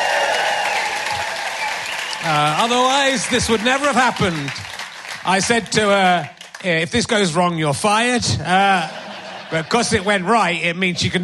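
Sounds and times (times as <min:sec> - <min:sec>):
audience at a live show applauding a tour manager: 0:00.0 - 0:06.6
speech: 0:02.2 - 0:04.6, 0:05.2 - 0:11.2
laughter: 0:08.4 - 0:10.3.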